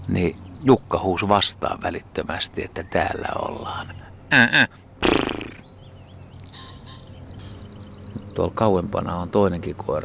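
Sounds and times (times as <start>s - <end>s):
speech: 0.1s - 5.3s, 8.4s - 10.0s
faint high bird chirps: 5.4s - 8.4s
male pheasant crowing: 6.5s - 7.6s.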